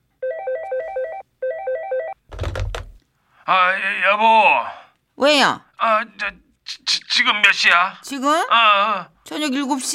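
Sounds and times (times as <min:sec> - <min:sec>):
mobile phone ringing: 0:00.2 - 0:02.2
speech: 0:03.5 - 0:09.9.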